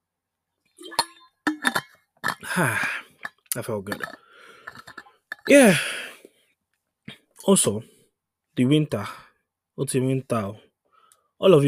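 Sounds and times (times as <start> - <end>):
glass clinking while being handled and set down: 0.8 - 2.5, 3.2 - 5.5
speech: 2.6 - 2.9, 3.6 - 4.2, 5.5 - 6.0, 7.4 - 7.9, 8.6 - 9.2, 9.8 - 10.7, 11.4 - 11.6.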